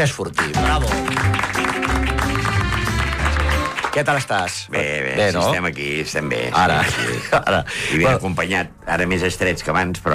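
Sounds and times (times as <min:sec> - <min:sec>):
speech: 0:00.0 - 0:02.4, 0:04.0 - 0:10.1
audience applause: 0:00.4 - 0:04.3
music playing: 0:00.4 - 0:07.2.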